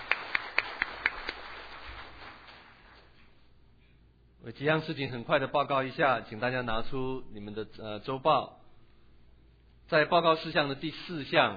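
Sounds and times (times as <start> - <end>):
audience applauding: 0.0 - 3.2
speech: 4.4 - 8.6, 9.9 - 11.5.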